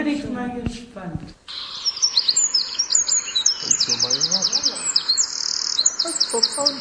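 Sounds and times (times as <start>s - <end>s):
speech: 0.0s - 1.6s, 6.3s - 6.8s
Eurasian wren singing: 1.5s - 6.8s
another bird warbling softly: 1.5s - 6.8s.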